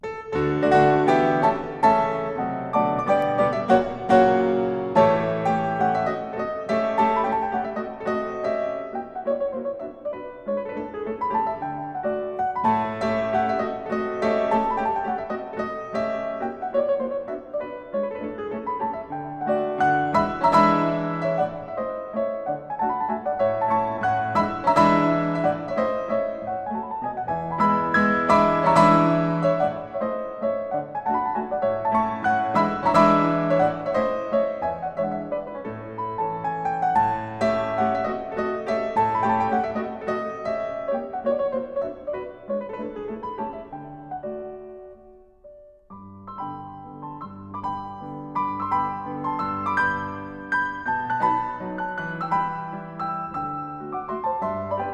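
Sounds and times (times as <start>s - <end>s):
mazurka in D major on piano: 0.0s - 54.9s.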